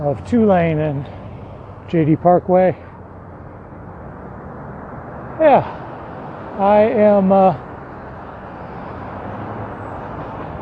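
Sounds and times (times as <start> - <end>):
speech: 0.0 - 1.2, 1.9 - 2.9, 5.4 - 5.8, 6.6 - 7.7
bus, truck and SUV passing near Tulane and JD Parkway intersection: 0.0 - 10.5.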